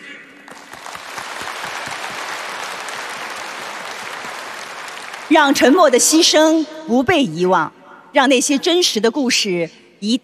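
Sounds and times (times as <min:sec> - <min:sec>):
audience applause: 0:00.5 - 0:05.8
speech: 0:05.3 - 0:10.2.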